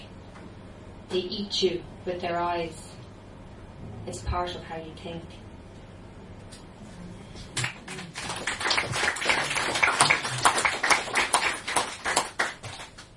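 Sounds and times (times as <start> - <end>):
speech: 1.1 - 2.9, 4.0 - 5.4
audience clapping: 7.6 - 13.1.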